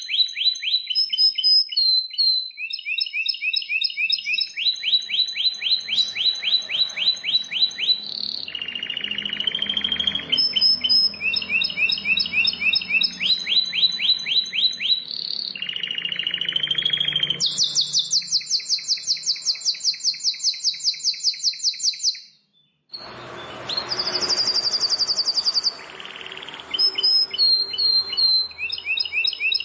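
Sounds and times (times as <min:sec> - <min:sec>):
bar-winged prinia song: 0:00.0 - 0:29.6.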